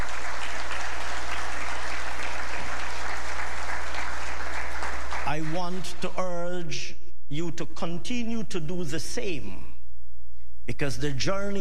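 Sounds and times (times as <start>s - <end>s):
audience applause for parents: 0.0s - 5.9s
speech: 5.4s - 9.7s, 10.7s - 11.5s.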